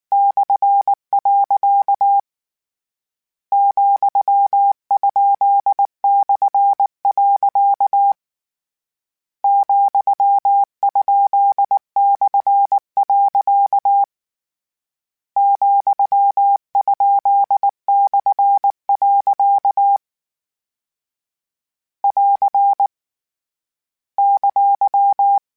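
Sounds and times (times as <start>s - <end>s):
Morse code CW code groups: 0.1s - 2.2s, 3.5s - 8.2s, 9.5s - 14.1s, 15.4s - 20.0s, 22.0s - 22.9s, 24.2s - 25.4s.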